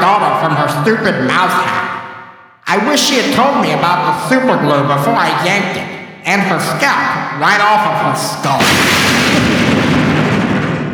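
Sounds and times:
speech: 0:00.8 - 0:01.8, 0:02.7 - 0:09.1
lightning thunder crack sound effect: 0:08.5 - 0:10.9.

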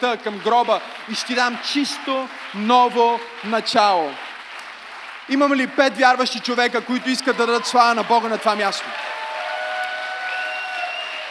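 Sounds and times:
speech: 0:00.0 - 0:04.3, 0:05.3 - 0:09.2
audience applause: 0:00.0 - 0:11.3
faint tonal whistles or cheers: 0:07.1 - 0:11.3.

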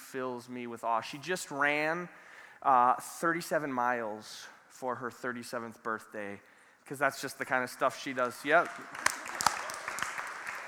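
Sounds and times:
speech: 0:00.1 - 0:09.2
audience clapping: 0:08.1 - 0:10.6.

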